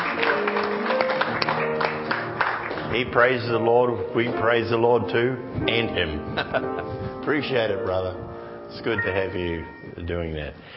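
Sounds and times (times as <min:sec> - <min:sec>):
church congregation clapping for a saxophone player: 0:00.0 - 0:03.6
speech: 0:03.0 - 0:10.7
sustained tonal background: 0:05.2 - 0:10.4.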